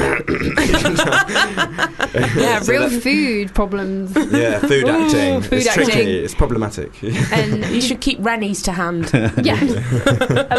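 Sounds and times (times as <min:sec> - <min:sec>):
voice imitating an actor with something stuck in his throat: 0:00.0 - 0:00.6
laughter: 0:00.0 - 0:02.9, 0:04.2 - 0:05.4, 0:07.1 - 0:07.9, 0:09.0 - 0:10.5
speech: 0:00.2 - 0:10.5.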